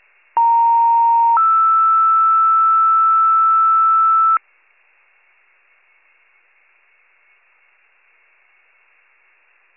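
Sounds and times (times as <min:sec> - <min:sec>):
fire pager alert: 0:00.4 - 0:04.4.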